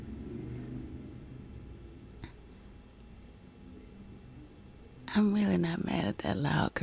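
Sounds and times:
motorcycle riding: 0:00.0 - 0:02.3
speech: 0:05.2 - 0:06.8.

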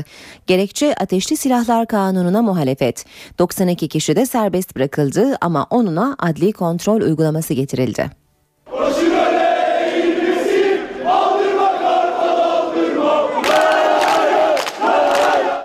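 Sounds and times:
speech: 0:00.0 - 0:08.8
football fan group chanting outside courthouse: 0:08.7 - 0:15.6.

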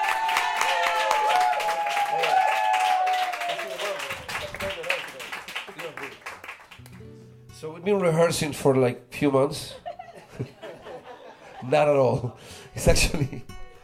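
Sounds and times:
sustained vocal cheer: 0:00.0 - 0:04.3
audience applause for a flamenco performer at a New York club: 0:00.0 - 0:06.9
speech: 0:07.8 - 0:09.8, 0:11.6 - 0:13.5
laughter: 0:09.6 - 0:13.5.

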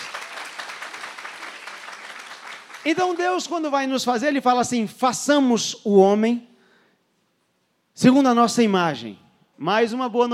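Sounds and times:
crowd clapping: 0:00.0 - 0:03.6
speech: 0:02.8 - 0:06.5, 0:08.0 - 0:10.3.

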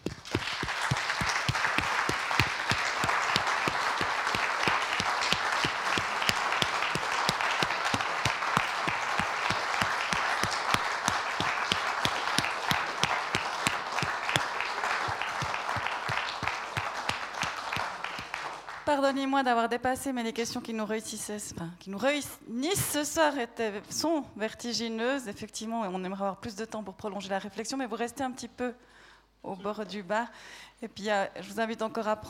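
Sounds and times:
audience applause: 0:00.0 - 0:18.9
speech: 0:19.1 - 0:32.2.

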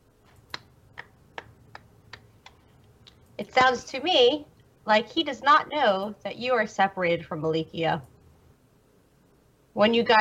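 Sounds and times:
hand clapping: 0:00.5 - 0:02.6
speech: 0:03.5 - 0:08.1, 0:09.8 - 0:10.1.

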